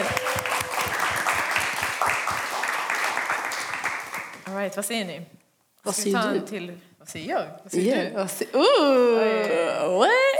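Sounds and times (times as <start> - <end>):
crowd applauding: 0.0 - 4.4
speech: 4.7 - 10.3.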